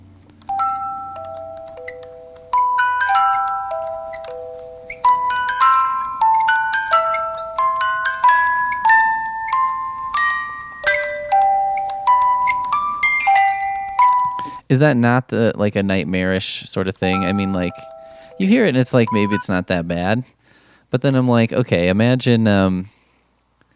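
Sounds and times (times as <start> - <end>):
music box melody: 0.0 - 14.6, 17.0 - 19.6
speech: 14.7 - 23.0.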